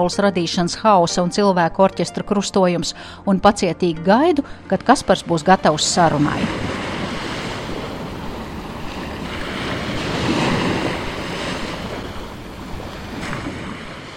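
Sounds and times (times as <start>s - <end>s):
speech: 0.0s - 6.8s
waves from a passing ship's wake: 4.7s - 14.1s.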